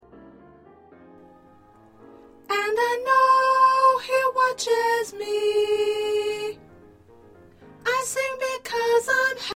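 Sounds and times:
first soprano singing: 1.2s - 7.1s, 7.8s - 9.5s.

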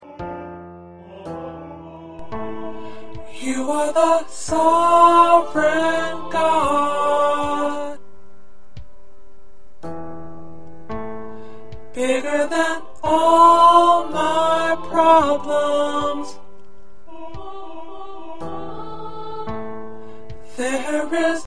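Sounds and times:
tenor singing: 0.0s - 8.0s, 11.9s - 19.8s, 20.4s - 21.4s.

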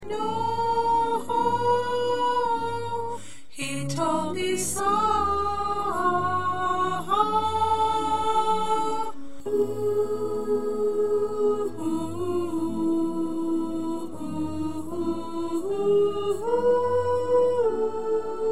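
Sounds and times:
choir with soprano: 0.0s - 18.4s.

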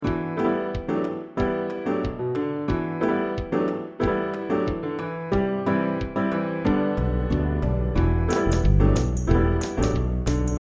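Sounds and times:
musical accompaniment: 0.0s - 10.5s.

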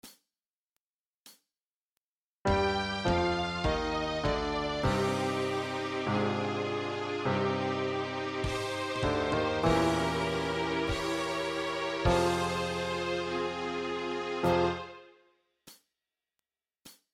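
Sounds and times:
musical accompaniment: 2.5s - 15.1s.

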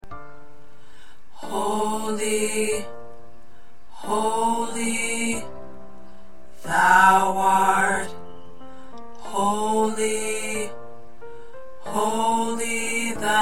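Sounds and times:
alto choir part singing: 1.4s - 3.0s, 4.0s - 5.6s, 6.6s - 8.4s, 9.2s - 10.8s, 11.9s - 13.3s.

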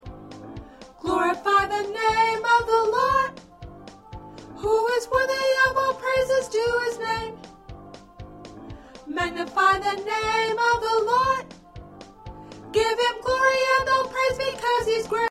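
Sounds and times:
soprano singing: 0.8s - 8.1s, 9.0s - 15.2s.

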